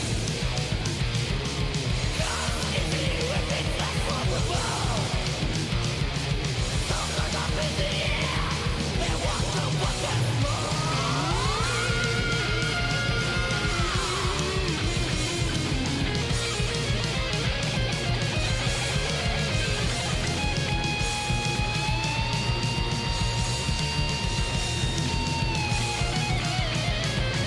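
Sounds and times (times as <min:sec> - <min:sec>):
1980s-style speed thrash metal song: 0:00.0 - 0:27.4.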